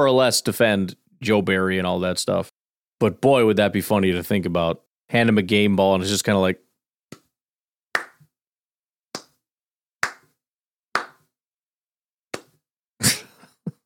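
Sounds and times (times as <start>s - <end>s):
speech: 0.0s - 6.6s
slow clapping: 8.0s - 8.3s, 9.2s - 9.4s, 10.0s - 10.4s, 11.0s - 11.3s.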